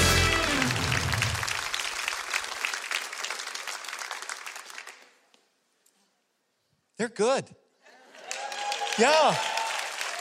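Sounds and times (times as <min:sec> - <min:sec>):
audience applause: 0:00.0 - 0:05.2, 0:08.0 - 0:10.1
speech: 0:07.0 - 0:07.6, 0:09.0 - 0:09.6.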